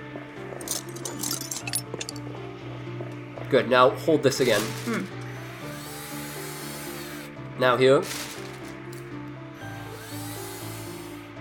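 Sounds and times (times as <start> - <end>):
handful of small metal screws clinking: 0.6 - 2.2
speech: 3.5 - 5.2, 7.6 - 8.3.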